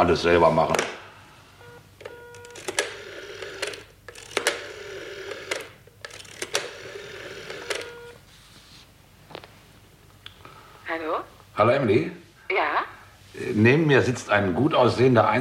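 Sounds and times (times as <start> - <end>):
speech: 0.0 - 1.0, 11.6 - 12.2, 13.5 - 15.3
telephone ringing: 1.6 - 8.2.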